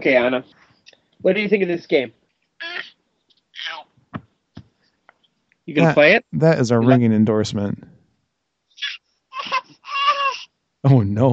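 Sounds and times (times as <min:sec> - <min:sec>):
speech: 0:00.0 - 0:00.6, 0:01.2 - 0:02.2, 0:05.7 - 0:08.0, 0:10.8 - 0:11.3
seven-week-old baby crying: 0:02.6 - 0:03.0, 0:03.6 - 0:03.9, 0:08.8 - 0:10.5.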